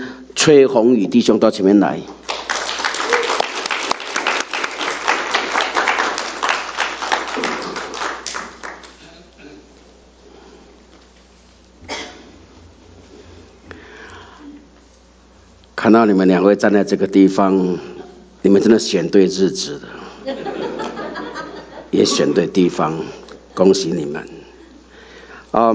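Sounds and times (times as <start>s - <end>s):
speech: 0.4s - 2.3s, 15.9s - 20.4s, 21.9s - 24.4s, 25.5s - 25.7s
audience applause: 2.2s - 9.0s
laughter: 20.0s - 23.8s.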